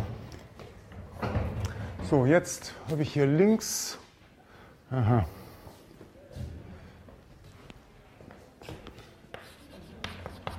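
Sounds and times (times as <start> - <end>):
speech: 2.1 - 4.0, 4.9 - 5.4
pen scratching on paper: 9.4 - 10.5.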